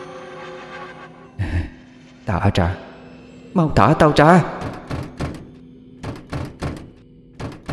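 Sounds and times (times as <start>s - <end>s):
speech: 2.3s - 2.9s, 3.6s - 4.8s
door being rammed, kicked and yanked, rattling: 4.5s - 7.7s.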